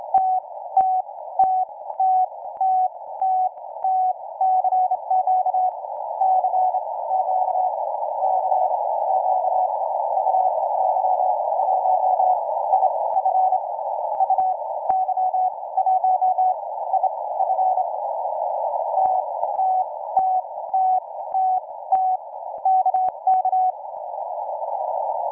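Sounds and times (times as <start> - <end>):
Sputnik radio signal on 14MHz: 0.0 - 25.2.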